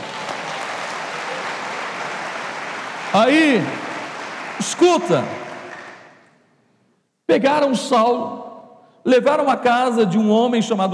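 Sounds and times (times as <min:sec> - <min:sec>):
audience applause: 0:00.0 - 0:06.3
speech: 0:03.1 - 0:03.8, 0:04.6 - 0:05.4, 0:07.3 - 0:08.4, 0:09.0 - 0:10.9.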